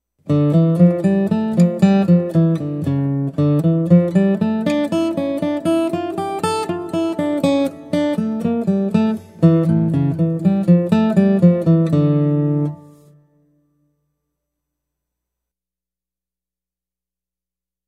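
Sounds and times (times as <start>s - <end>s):
guitar: 0.2s - 14.1s.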